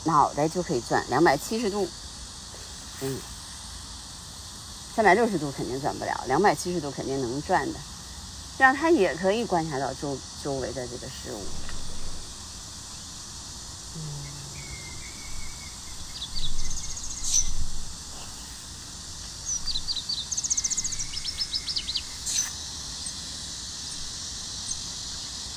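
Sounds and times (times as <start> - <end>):
speech: 0.0 - 2.0, 3.0 - 3.3, 5.0 - 7.9, 8.6 - 11.6, 14.0 - 14.2
cicadas buzzing: 0.0 - 25.5
birds chirping: 11.2 - 25.5.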